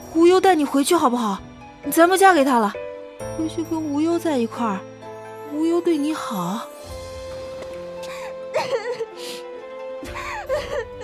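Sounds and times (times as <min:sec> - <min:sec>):
speech: 0:00.1 - 0:02.8, 0:03.4 - 0:04.9, 0:05.5 - 0:06.7, 0:08.6 - 0:08.9
person crying: 0:08.2 - 0:09.2, 0:10.1 - 0:11.0.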